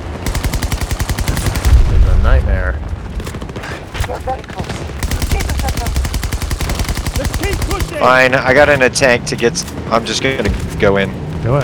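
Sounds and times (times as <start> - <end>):
Gatling gun firing in a video game: 0.2 - 2.2, 4.9 - 8.3
speech: 8.0 - 11.6.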